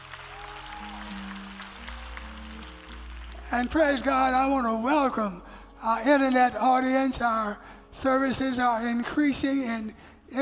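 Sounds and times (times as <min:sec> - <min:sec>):
congregation applauding a church co-pastor during a Sunday service: 0:00.0 - 0:04.7
sustained musical tones: 0:00.0 - 0:07.0
speech: 0:03.5 - 0:10.4.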